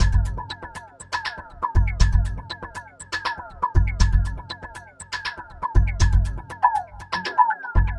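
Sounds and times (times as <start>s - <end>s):
modular synth percussion loop: 0.0s - 7.9s.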